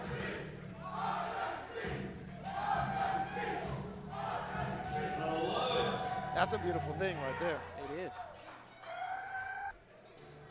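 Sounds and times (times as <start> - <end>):
large crowd roaring and cheering: 0.0 - 9.7
speech: 6.4 - 8.4.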